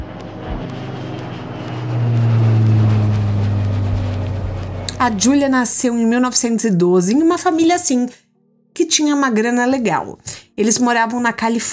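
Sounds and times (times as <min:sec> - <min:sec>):
jet airplane taking off: 0:00.0 - 0:05.8
speech: 0:05.0 - 0:08.2, 0:08.8 - 0:11.7.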